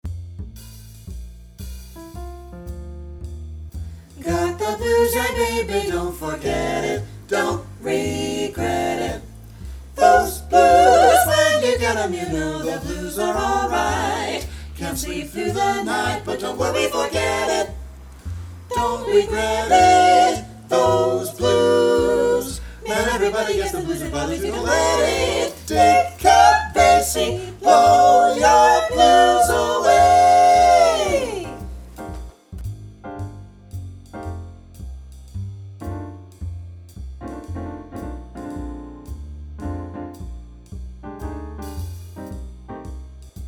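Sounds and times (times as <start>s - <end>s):
five-part vocal blues etude in F: 4.2s - 17.9s, 18.7s - 31.8s.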